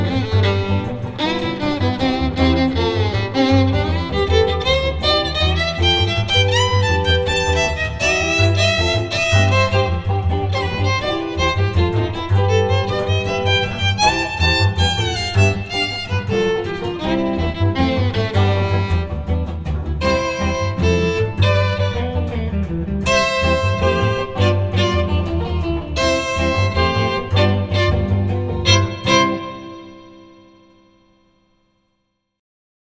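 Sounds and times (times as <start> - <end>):
string trio playing Latin music: 0.0 - 30.8.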